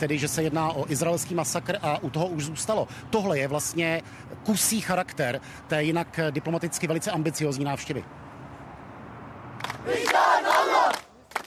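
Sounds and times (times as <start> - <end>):
speech: 0.0 - 8.3, 9.8 - 10.4
large crowd chanting slogans in the street: 9.8 - 11.4.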